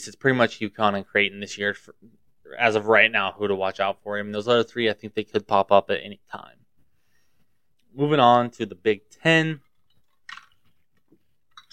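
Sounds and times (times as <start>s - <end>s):
speech: 0.0s - 6.6s, 7.9s - 9.6s
person drinking ice water: 9.6s - 11.7s.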